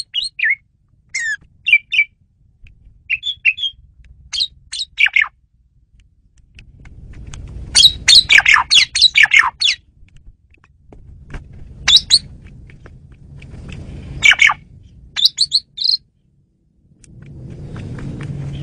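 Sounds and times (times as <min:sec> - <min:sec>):
Asian pied starling squawky chirps: 0:00.0 - 0:02.1, 0:03.1 - 0:05.4, 0:07.8 - 0:09.8, 0:11.8 - 0:12.3, 0:14.2 - 0:14.6, 0:15.2 - 0:16.0
low rumble: 0:00.6 - 0:18.6.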